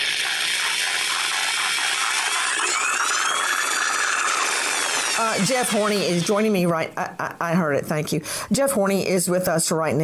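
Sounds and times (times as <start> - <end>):
electric saw running: 0.0 - 6.6
speech: 5.2 - 10.0.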